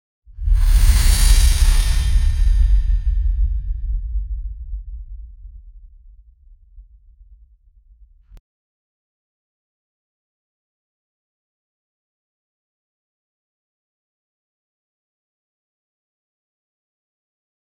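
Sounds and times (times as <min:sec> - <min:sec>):
corrupted portal opening: 0:00.4 - 0:03.4.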